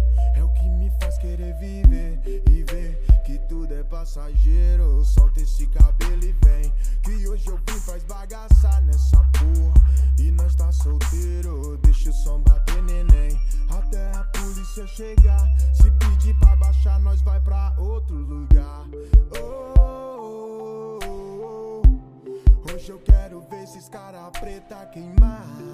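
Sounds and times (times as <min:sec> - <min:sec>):
deep hip hop bass: 0:00.0 - 0:20.0.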